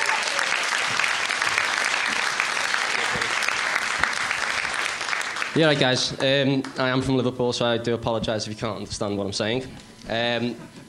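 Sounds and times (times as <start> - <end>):
audience applause: 0.0 - 6.3
speech: 5.6 - 10.8.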